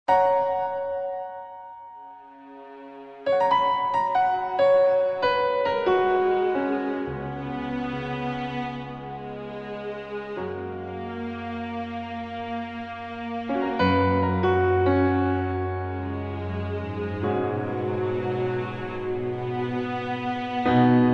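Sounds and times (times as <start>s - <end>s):
romantic music: 0.1s - 21.1s.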